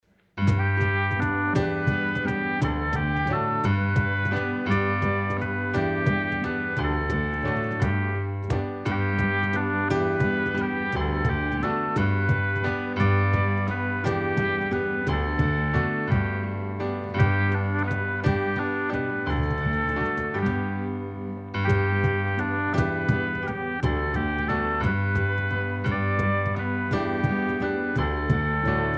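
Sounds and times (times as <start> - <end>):
music: 0.0 - 28.9.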